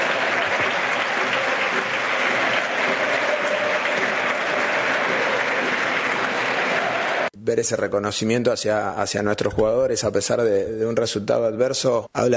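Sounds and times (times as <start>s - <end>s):
stadium crowd applauding at El Molinón: 0.0s - 7.3s
speech: 7.4s - 12.3s.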